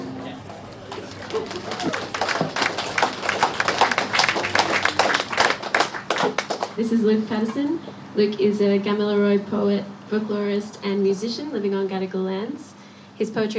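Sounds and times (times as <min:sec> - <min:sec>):
audience applause: 0:00.3 - 0:06.8
speech: 0:06.9 - 0:13.5.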